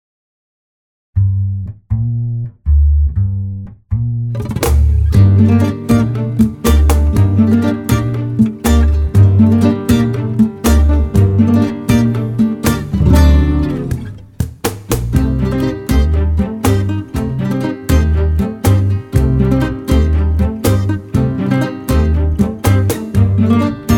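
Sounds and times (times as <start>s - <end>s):
comic rumba music: 1.2s - 23.9s.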